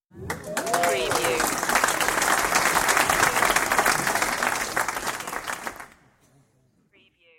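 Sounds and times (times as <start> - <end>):
audience applause: 0.2 - 6.0.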